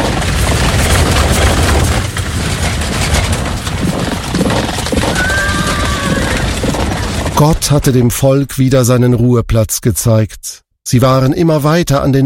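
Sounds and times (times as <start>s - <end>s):
horse-drawn war chariots thundering past, rumbling wheels and clattering hooves: 0.0s - 9.0s
high horse whinny: 5.0s - 7.1s
speech: 7.4s - 12.2s.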